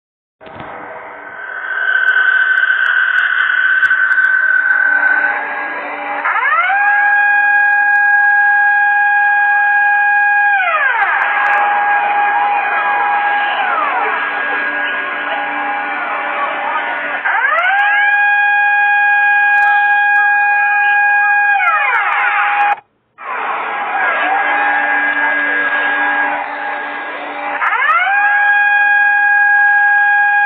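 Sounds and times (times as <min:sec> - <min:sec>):
air raid siren: 0:00.5 - 0:30.4.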